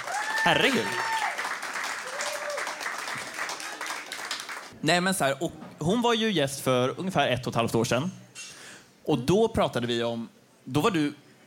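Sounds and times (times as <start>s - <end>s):
audience applause: 0.0s - 4.8s
speech: 0.4s - 1.2s, 4.8s - 8.2s, 9.0s - 11.4s.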